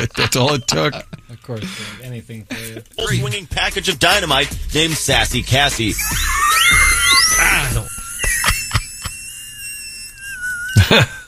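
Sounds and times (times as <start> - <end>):
laughter: 0.0 - 1.9, 5.2 - 11.2
speech: 0.0 - 8.4, 10.8 - 11.2
high whistle: 6.0 - 11.2.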